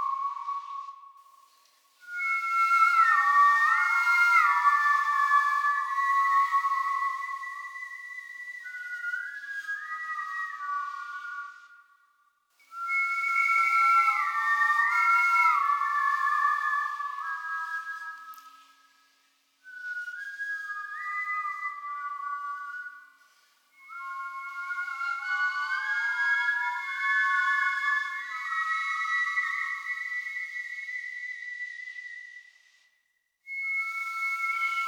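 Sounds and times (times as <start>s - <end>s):
whistle: 0.0s - 34.8s.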